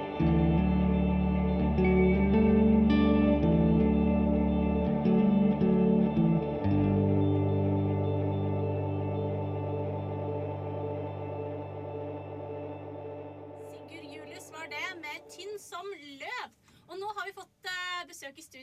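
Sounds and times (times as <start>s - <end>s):
short song played in studio: 0.0s - 15.8s.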